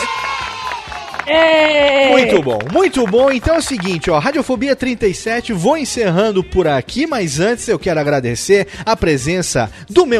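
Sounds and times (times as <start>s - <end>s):
round of applause and cheering: 0.0s - 4.6s
speech: 1.3s - 10.1s.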